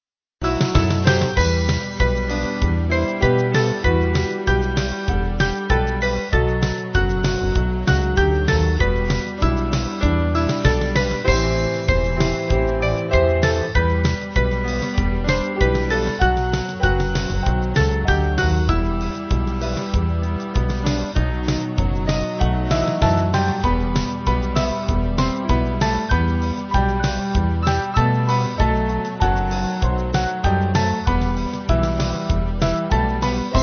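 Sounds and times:
slow band backing music for churches: 0.5s - 33.6s.

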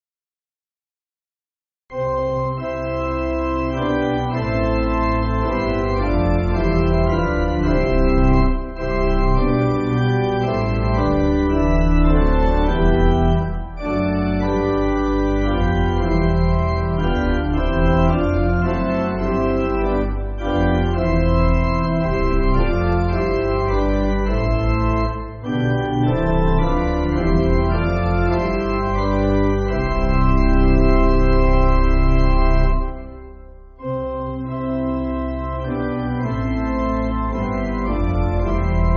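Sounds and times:
pipe organ backing for churches: 1.9s - 38.9s.

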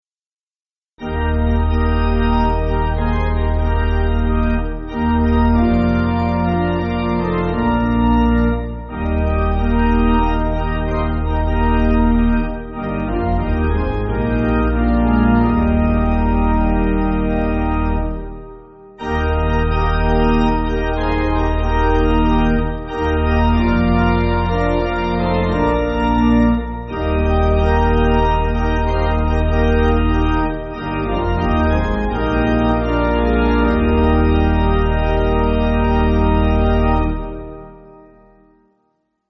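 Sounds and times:
pipe organ backing for churches: 1.0s - 38.5s.

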